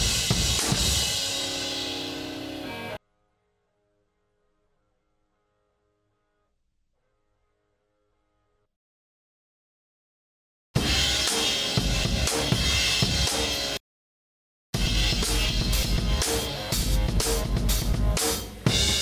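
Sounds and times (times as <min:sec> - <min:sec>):
cymbal: 0:00.0 - 0:03.0, 0:10.8 - 0:13.8, 0:14.8 - 0:19.0.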